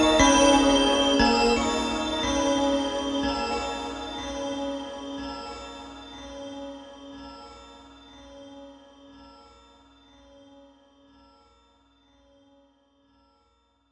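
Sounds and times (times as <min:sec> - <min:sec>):
spheric string bells: 0:00.0 - 0:10.6.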